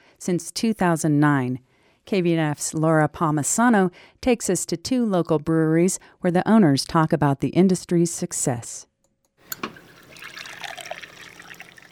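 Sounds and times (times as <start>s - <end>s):
speech: 0.2s - 8.9s
pint of craft beer being poured from a tap: 9.4s - 11.9s.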